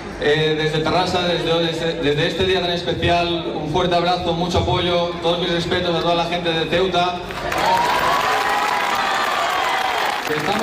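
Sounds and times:
speech: 0:00.2 - 0:08.1
ovation from over a hundred neighbours in Terrassa: 0:07.3 - 0:10.6.

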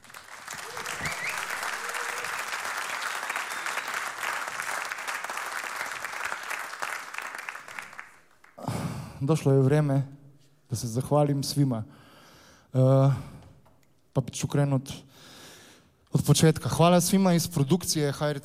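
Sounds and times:
sustained audience applause for a band: 0:00.0 - 0:08.6
speech: 0:09.2 - 0:12.0, 0:12.7 - 0:13.4, 0:14.2 - 0:15.3, 0:16.1 - 0:18.4.

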